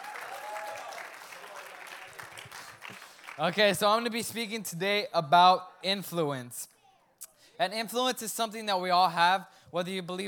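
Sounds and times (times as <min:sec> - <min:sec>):
audience applause: 0:00.0 - 0:03.8
speech: 0:03.4 - 0:06.7, 0:07.6 - 0:10.2.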